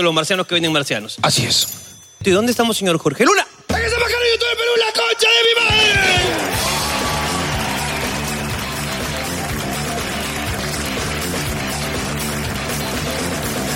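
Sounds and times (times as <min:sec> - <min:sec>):
speech: 0:00.0 - 0:06.1
audience applause and cheering: 0:05.7 - 0:13.7.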